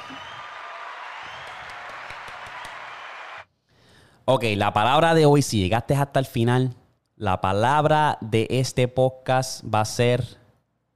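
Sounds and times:
applause: 0:00.0 - 0:03.5
speech: 0:04.3 - 0:10.4.

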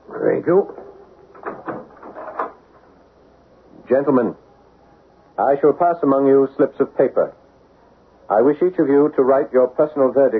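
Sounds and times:
speech: 0:00.2 - 0:00.8, 0:03.9 - 0:04.4, 0:05.4 - 0:07.4, 0:08.3 - 0:10.3
door opening or closing: 0:00.7 - 0:02.6.

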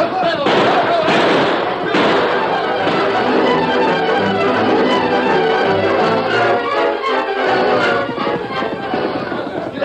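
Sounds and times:
people shouting: 0:00.1 - 0:09.8
rapid gunshots in a gunfight on a frontier trail: 0:00.4 - 0:03.9.

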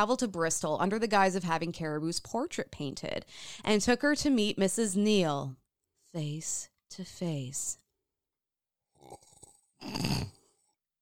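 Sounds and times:
speech: 0:00.0 - 0:07.8, 0:09.8 - 0:10.4
person dramatically slurping a drink: 0:09.0 - 0:10.7.

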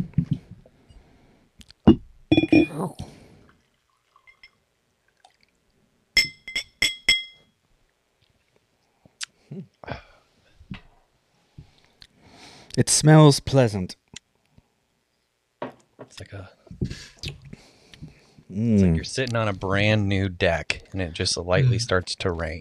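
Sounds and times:
glasses clinking: 0:02.3 - 0:02.8, 0:04.2 - 0:04.6, 0:06.2 - 0:07.5
speech: 0:02.8 - 0:03.2, 0:12.8 - 0:14.0, 0:18.6 - 0:22.5.

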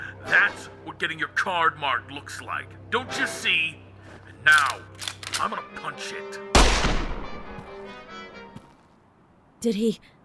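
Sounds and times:
speech: 0:00.3 - 0:03.8, 0:04.4 - 0:07.1, 0:09.6 - 0:10.2
gunshot: 0:06.6 - 0:07.5.

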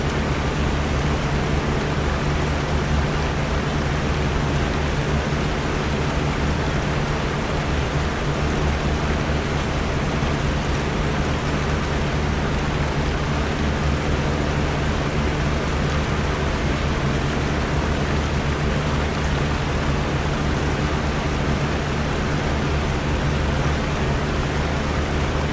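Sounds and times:
fan: 0:00.0 - 0:25.5
rain: 0:00.0 - 0:25.5.

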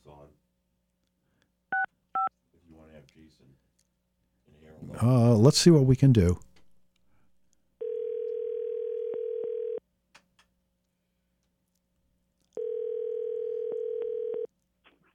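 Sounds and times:
speech: 0:03.2 - 0:03.8, 0:04.5 - 0:06.5
telephone dial tone: 0:07.8 - 0:09.8, 0:12.6 - 0:14.5.

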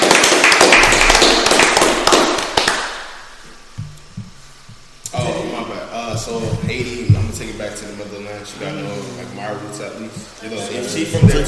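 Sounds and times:
hands clapping: 0:00.0 - 0:04.3
speech: 0:06.3 - 0:11.4.

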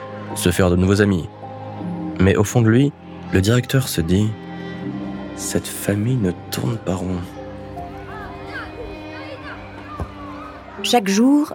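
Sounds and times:
children shouting and chattering in a schoolyard: 0:00.0 - 0:11.5
speech: 0:00.4 - 0:01.4, 0:02.2 - 0:07.4, 0:10.8 - 0:11.5
children squealing: 0:07.9 - 0:11.5.

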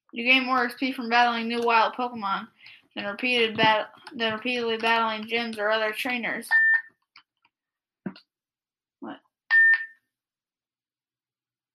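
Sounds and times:
speech: 0:00.1 - 0:06.6
device low-battery warning beep: 0:06.5 - 0:06.9, 0:09.5 - 0:10.0.

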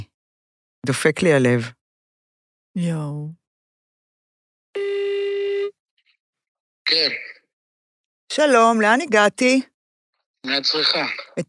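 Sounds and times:
speech: 0:00.8 - 0:01.8, 0:02.8 - 0:03.4, 0:06.9 - 0:07.4, 0:08.4 - 0:09.7, 0:10.4 - 0:11.4
phone call ringback tone: 0:04.8 - 0:05.7.

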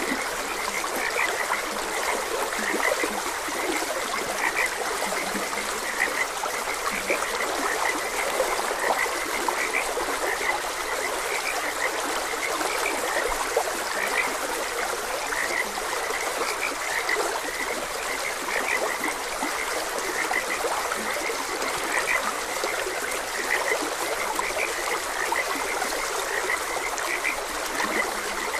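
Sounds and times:
flowing stream: 0:00.0 - 0:28.5
frogs croaking in chorus: 0:00.0 - 0:28.5.

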